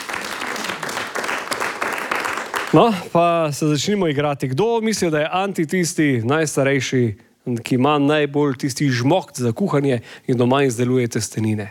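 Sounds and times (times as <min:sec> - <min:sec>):
audience applause for a guest at a live game event: 0:00.0 - 0:03.1
speech: 0:02.8 - 0:11.6.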